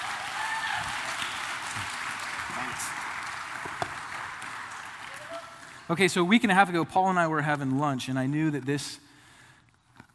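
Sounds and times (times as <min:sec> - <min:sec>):
audience applause welcoming a guest to the stage: 0:00.0 - 0:06.0
speech: 0:02.8 - 0:03.1, 0:05.9 - 0:09.0
person whooping: 0:05.1 - 0:05.6.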